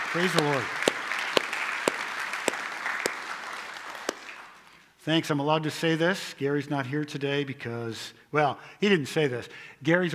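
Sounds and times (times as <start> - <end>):
round of applause: 0.0 - 4.8
speech: 0.1 - 0.8, 5.0 - 10.1.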